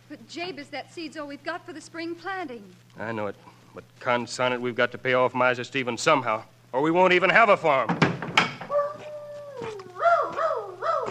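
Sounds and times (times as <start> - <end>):
low steady hum: 0.0 - 11.0
speech: 0.1 - 8.2
dog howling and yelping: 8.7 - 11.0.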